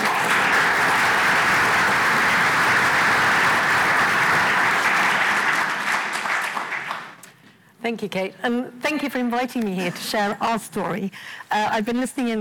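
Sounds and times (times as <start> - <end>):
audience applause: 0.0 - 7.3
speech: 7.9 - 12.4.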